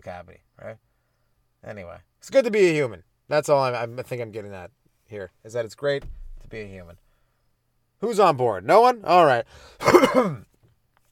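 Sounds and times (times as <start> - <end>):
speech: 0.0 - 0.9, 1.6 - 7.0, 8.0 - 10.5
person coughing after smoking weed: 9.8 - 10.5.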